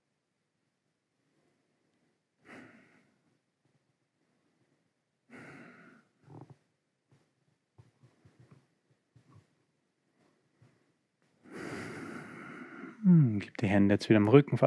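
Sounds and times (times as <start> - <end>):
slow deep breaths during a yoga exercise: 1.2 - 3.4, 4.2 - 6.6, 10.0 - 13.4
speech: 13.4 - 14.6.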